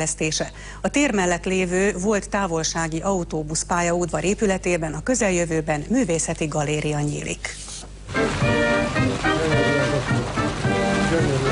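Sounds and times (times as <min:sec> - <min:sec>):
speech: 0:00.0 - 0:08.4
three-tiered Danubius fountain splashing: 0:08.0 - 0:11.5
melodic tune: 0:08.1 - 0:11.5.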